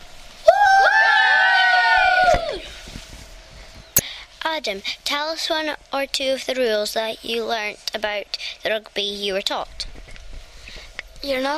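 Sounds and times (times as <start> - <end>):
children's team cheer: 0.5 - 2.7
speech: 4.5 - 9.8, 11.2 - 11.5.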